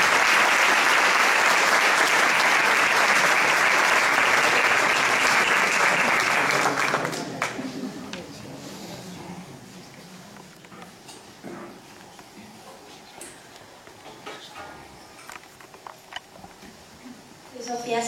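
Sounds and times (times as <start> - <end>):
audience applause: 0.0 - 8.0.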